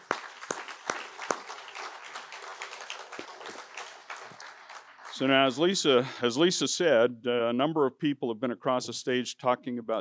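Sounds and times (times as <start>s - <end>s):
audience applause: 0.0s - 6.0s
speech: 5.2s - 9.9s.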